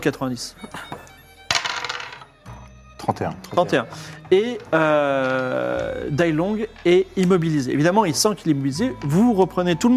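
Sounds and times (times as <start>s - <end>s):
speech: 0.0s - 0.9s, 3.1s - 9.9s
die being rolled: 1.5s - 2.3s.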